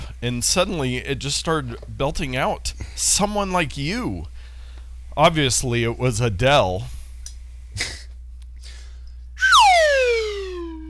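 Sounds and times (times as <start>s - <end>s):
speech: 0.2s - 4.3s, 5.2s - 7.0s
short noisy burst: 9.4s - 10.8s
stylophone tone sliding down in pitch: 9.4s - 10.8s.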